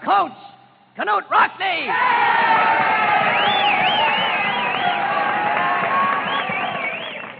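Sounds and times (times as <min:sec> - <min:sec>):
speech: 0:00.1 - 0:04.2
crowd cheering: 0:01.9 - 0:07.3.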